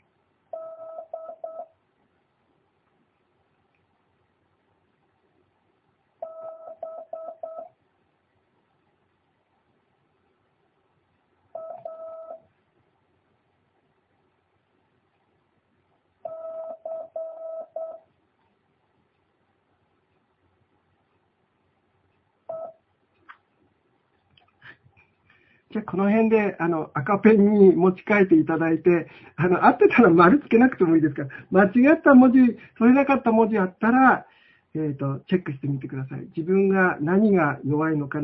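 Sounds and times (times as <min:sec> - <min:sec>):
Morse code characters keyed as tone beeps: 0:06.2 - 0:07.7, 0:16.3 - 0:18.0, 0:22.5 - 0:22.7
speech: 0:25.7 - 0:38.2.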